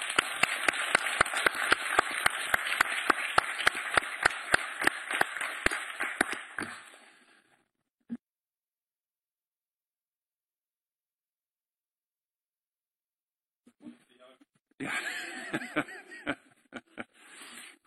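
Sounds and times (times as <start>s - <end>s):
group of children cheering and clapping: 0.0s - 7.0s
laughter: 14.8s - 17.2s.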